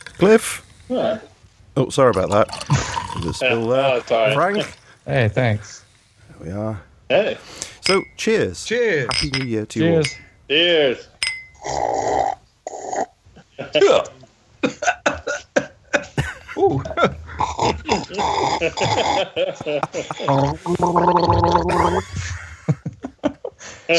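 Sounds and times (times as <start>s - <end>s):
speech: 0.2s - 5.8s, 6.4s - 12.4s, 13.7s - 14.9s, 16.7s - 22.8s
person gargling a drink: 2.3s - 3.7s, 16.8s - 22.4s
laughter: 13.4s - 23.8s.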